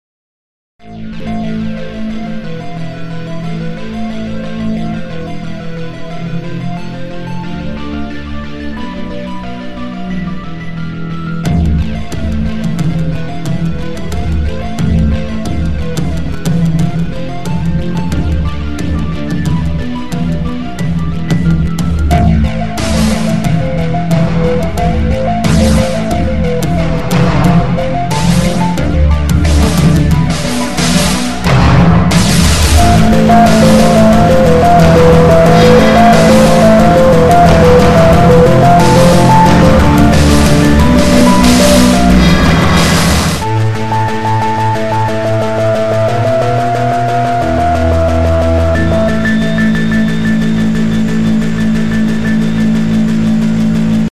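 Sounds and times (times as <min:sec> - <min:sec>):
fuzz-toned instrumental intro: 0:00.8 - 0:54.1.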